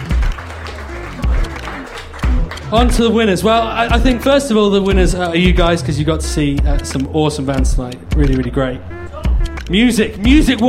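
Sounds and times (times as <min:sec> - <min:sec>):
audience applause at a local music event: 0:00.0 - 0:03.2
speech: 0:02.7 - 0:09.0, 0:09.7 - 0:10.6.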